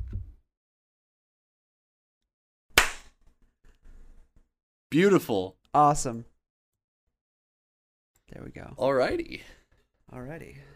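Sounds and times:
single hand clap for sync: 2.8 - 3.2
speech: 4.9 - 6.3, 8.4 - 10.7.

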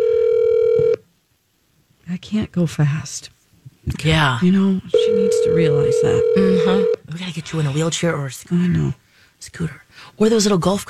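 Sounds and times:
electronic telephone tone of a phone call being dialed: 0.0 - 1.0, 4.9 - 7.0
speech: 2.2 - 10.8.

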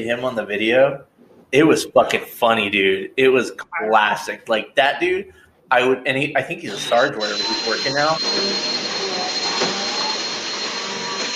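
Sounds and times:
speech: 0.0 - 8.9
power tool whirring: 6.7 - 11.3.

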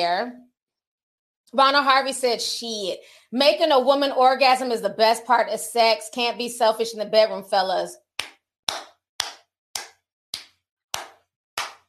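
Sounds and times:
speech: 0.0 - 0.5, 1.5 - 8.0
sharp hand claps: 8.2 - 11.8.

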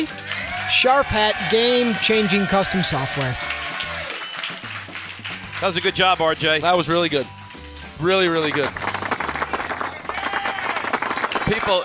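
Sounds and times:
speech: 0.0 - 3.6, 5.6 - 7.4, 8.0 - 8.8, 11.5 - 11.8
crowd cheering and yelling: 0.0 - 5.0, 9.9 - 11.0
applause: 0.0 - 6.4, 8.2 - 11.8.

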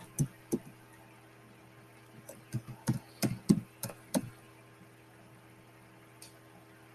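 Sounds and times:
computer keyboard typing: 0.0 - 0.8, 2.2 - 4.4.

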